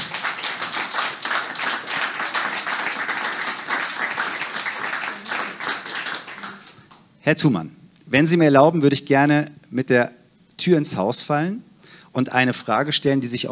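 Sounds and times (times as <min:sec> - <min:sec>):
audience applause: 0:00.0 - 0:07.0
speech: 0:07.3 - 0:13.5.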